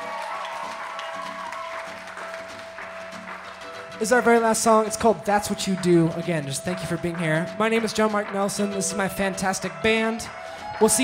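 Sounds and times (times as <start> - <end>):
audience applause: 0.0 - 11.0
speech: 4.0 - 11.0.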